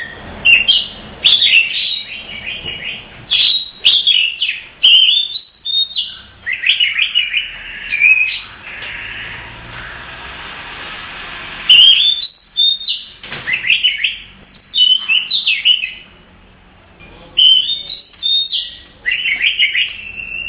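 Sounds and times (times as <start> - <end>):
Oriental magpie-robin whistling song: 0.0 - 9.3, 11.7 - 16.1, 17.4 - 20.4.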